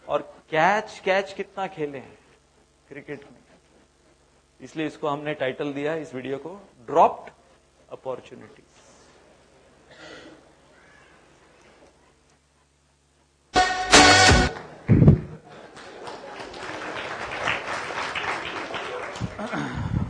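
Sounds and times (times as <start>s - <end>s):
speech: 0.1s - 2.2s, 2.9s - 3.4s, 4.6s - 8.7s
audience clapping: 14.2s - 20.0s.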